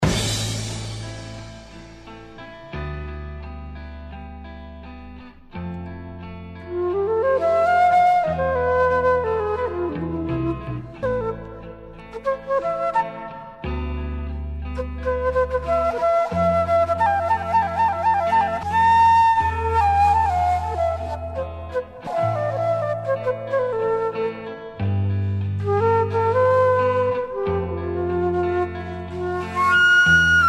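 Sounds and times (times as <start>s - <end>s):
flute solo: 6.6s - 30.4s.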